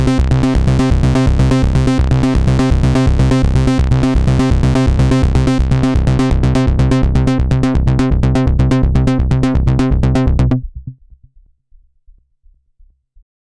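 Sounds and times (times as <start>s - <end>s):
synthesizer with tube: 0.0s - 10.6s.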